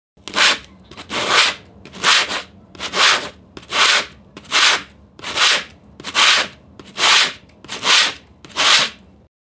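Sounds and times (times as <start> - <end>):
sandpaper: 0.3 - 9.0.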